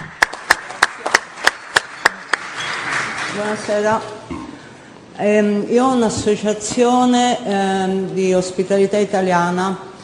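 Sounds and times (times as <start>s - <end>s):
audience applause: 0.0s - 3.7s
speech: 3.4s - 4.2s, 5.2s - 9.9s.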